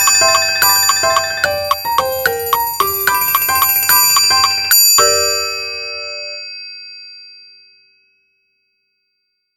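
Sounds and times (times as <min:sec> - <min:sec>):
piano: 0:00.0 - 0:06.4
triangle: 0:00.0 - 0:06.4.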